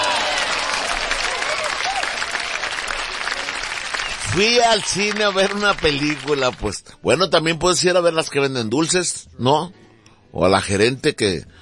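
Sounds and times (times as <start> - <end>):
applause: 0.0 - 6.8
speech: 4.4 - 11.6.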